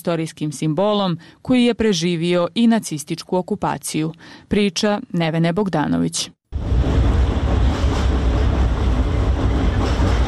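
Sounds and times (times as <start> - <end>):
speech: 0.0 - 6.7
tram rumbling across a bridge on the Sava: 6.6 - 10.2.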